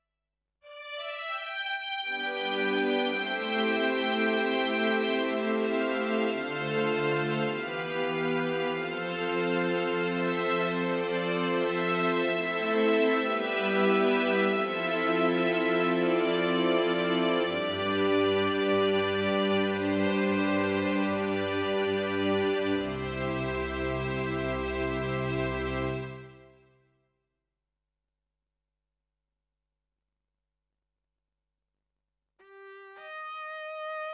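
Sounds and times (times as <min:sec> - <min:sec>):
strings: 0:00.7 - 0:26.6.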